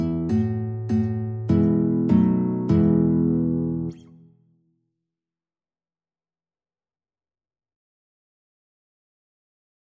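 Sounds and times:
guitar playing a hymn: 0.0s - 4.4s.

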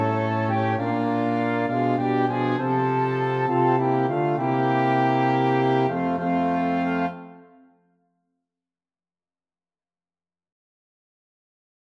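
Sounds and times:
flexible mixed ensemble of four players: 0.0s - 7.6s.

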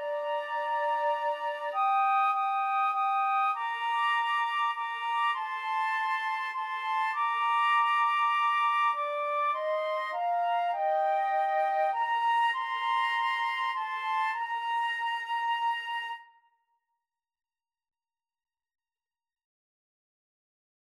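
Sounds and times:
flute trio playing a hymn: 0.0s - 16.2s.

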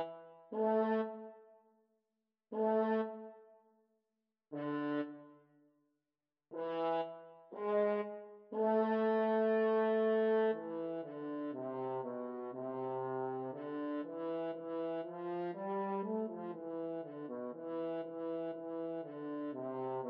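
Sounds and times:
horn: 0.0s - 1.3s, 2.6s - 3.3s, 6.5s - 20.0s.

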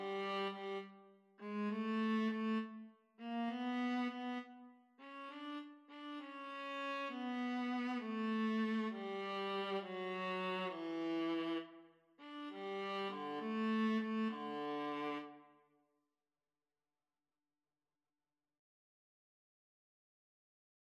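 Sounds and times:
viola duet: 0.0s - 15.4s.

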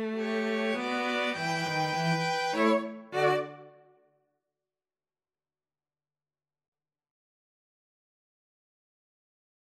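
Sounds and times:
two violins and cello: 0.0s - 3.7s.

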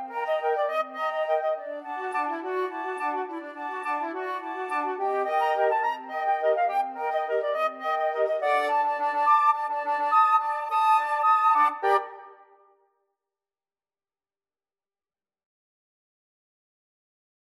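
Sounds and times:
flute choir: 0.0s - 12.7s.

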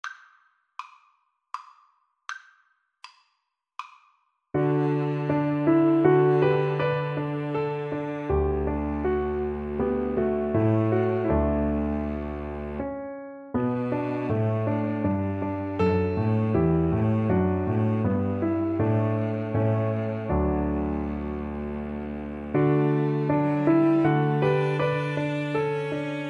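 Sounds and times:
piano trio: 4.6s - 26.2s.

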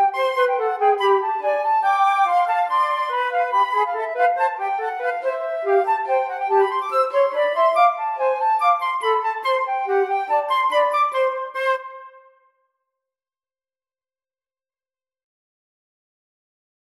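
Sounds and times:
flute duet: 0.0s - 12.4s.

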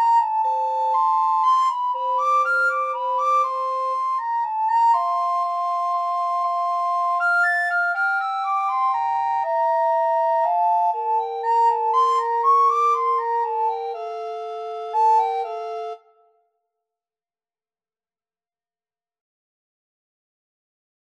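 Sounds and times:
recorder trio playing a minuet: 0.0s - 16.0s.

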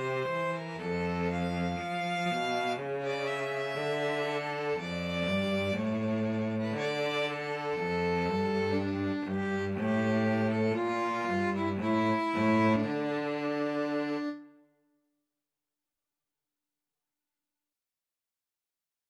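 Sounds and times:
cello playing a pastorale: 0.0s - 14.6s
two violins playing a pastorale: 0.0s - 14.6s.

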